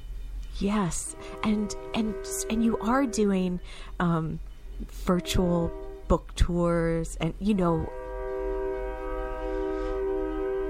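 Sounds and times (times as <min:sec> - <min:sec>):
speech: 0:00.6 - 0:08.0
train horn: 0:00.8 - 0:03.7, 0:04.9 - 0:06.2, 0:07.6 - 0:10.6.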